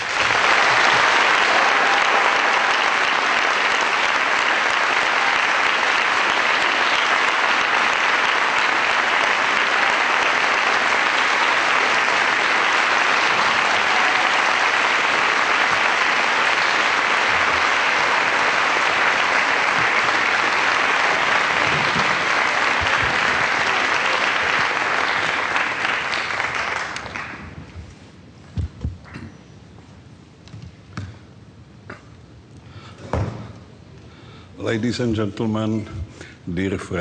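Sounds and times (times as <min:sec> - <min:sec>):
audience applause welcoming President Václav Havel: 0:00.0 - 0:27.8
speech: 0:34.8 - 0:36.9.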